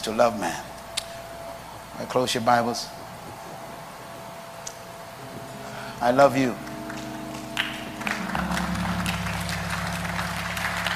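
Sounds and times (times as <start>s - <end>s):
speech: 0.0s - 0.7s, 2.0s - 3.0s, 6.0s - 6.6s
audience clapping: 6.9s - 10.9s.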